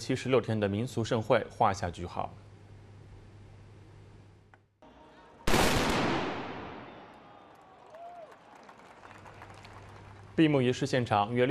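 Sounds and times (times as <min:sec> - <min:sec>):
speech: 0:00.0 - 0:02.5, 0:10.4 - 0:11.4
black powder gunfire salute boom: 0:05.5 - 0:07.4.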